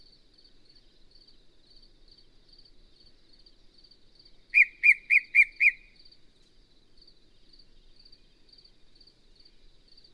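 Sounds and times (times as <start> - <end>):
Yellow-breasted Chat song: 4.6 - 5.9.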